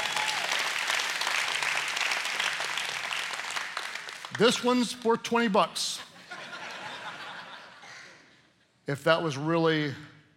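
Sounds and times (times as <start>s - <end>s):
audience clapping: 0.0s - 5.1s
speech: 4.4s - 6.1s, 8.9s - 10.1s
laughter: 5.9s - 8.5s.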